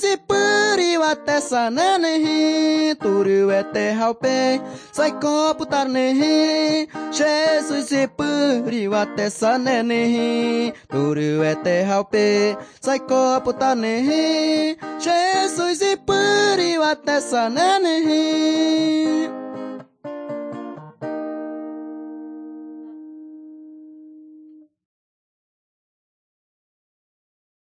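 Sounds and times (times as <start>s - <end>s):
person singing to God: 0.0s - 19.7s.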